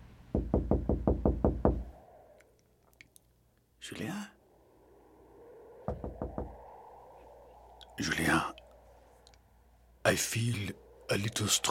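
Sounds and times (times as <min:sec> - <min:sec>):
knocking on a door: 0:00.4 - 0:01.8
speech: 0:03.8 - 0:04.4, 0:10.1 - 0:11.7.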